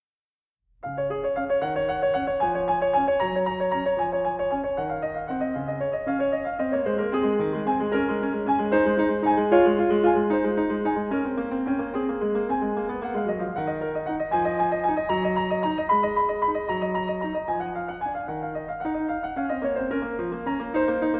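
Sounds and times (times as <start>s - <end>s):
classical prelude and fugue in C-sharp minor: 0.8s - 21.1s.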